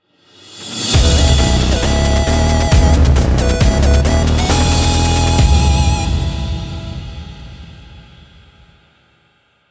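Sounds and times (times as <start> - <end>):
stage clear fanfare: 1.0 - 8.6.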